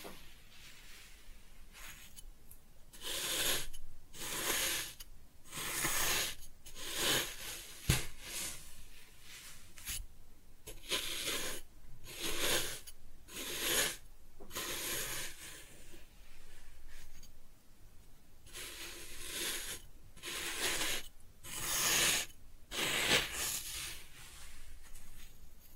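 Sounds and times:
kinetic sand being cut and scooped: 3.0 - 7.5, 10.7 - 15.6, 18.5 - 24.0.

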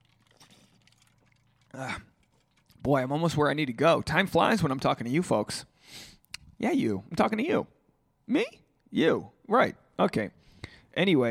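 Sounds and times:
slurping sip of an energy drink: 0.0 - 2.9
speech: 1.7 - 2.1, 2.8 - 11.2.

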